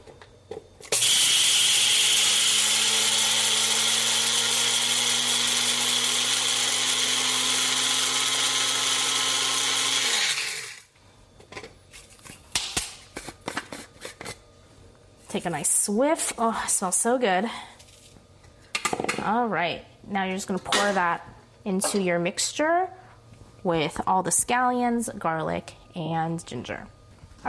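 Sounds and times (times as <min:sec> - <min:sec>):
electric spice grinder grinding Sichuan and white peppercorns: 0:00.8 - 0:10.9
speech: 0:15.4 - 0:17.7, 0:19.3 - 0:23.0, 0:23.6 - 0:27.4.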